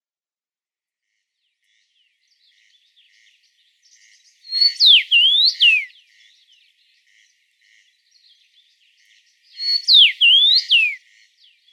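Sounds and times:
Cassin's finch whistling: 4.6s - 5.9s, 9.6s - 11.0s.

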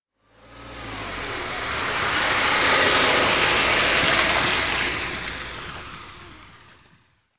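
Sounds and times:
car driving by slowly in wet sleet: 0.2s - 7.3s.

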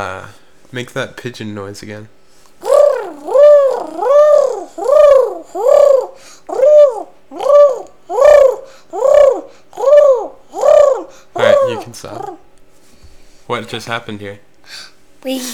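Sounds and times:
pigeon cooing: 2.6s - 12.5s.

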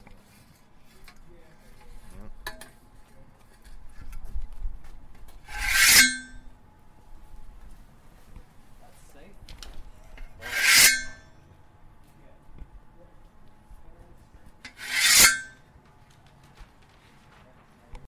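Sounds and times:
industrial steel pipe scraping: 5.4s - 6.5s, 9.9s - 11.4s, 14.7s - 15.6s.

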